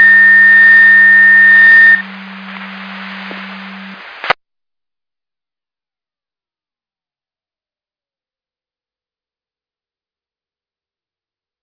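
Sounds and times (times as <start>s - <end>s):
siren: 0.0s - 4.0s.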